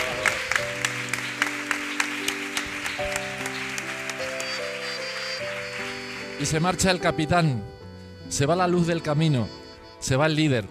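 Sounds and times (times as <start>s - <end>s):
audience applause: 0.0s - 7.0s
speech: 6.4s - 10.7s.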